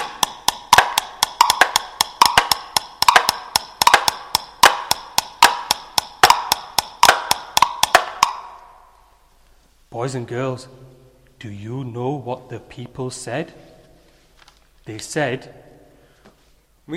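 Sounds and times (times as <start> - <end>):
hammering and chopping wood building a boat: 0.0 - 8.6
speech: 10.0 - 13.7, 14.9 - 15.6.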